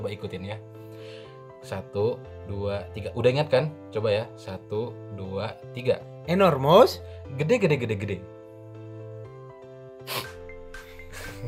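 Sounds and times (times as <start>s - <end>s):
speech: 0.0s - 8.3s
wet snotty sniffs: 10.0s - 11.0s.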